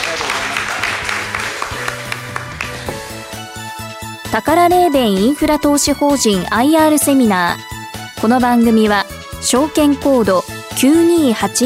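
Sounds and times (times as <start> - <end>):
audience applause: 0.0 - 3.1
speech: 4.4 - 11.6.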